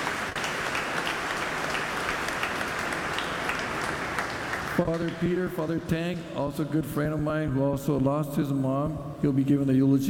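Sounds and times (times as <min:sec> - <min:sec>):
applause: 0:00.0 - 0:05.8
speech: 0:04.8 - 0:10.0.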